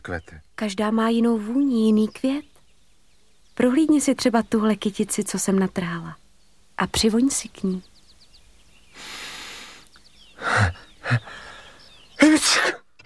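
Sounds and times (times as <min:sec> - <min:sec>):
speech: 0:00.0 - 0:02.5, 0:03.6 - 0:06.2, 0:06.8 - 0:07.9
powerful sneeze: 0:12.2 - 0:12.8.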